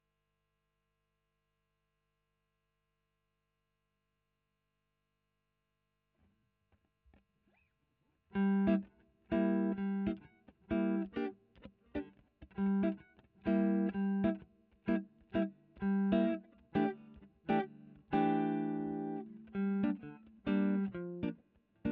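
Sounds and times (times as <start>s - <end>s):
electric guitar recorded with a Royer microphone: 8.3s - 21.8s.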